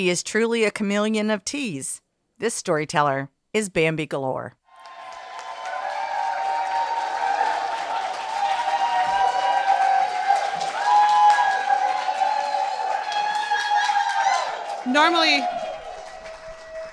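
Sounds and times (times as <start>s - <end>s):
speech: 0.0s - 4.6s, 14.9s - 15.6s
large crowd applause: 4.7s - 16.9s
whoops and cheers: 4.7s - 16.9s.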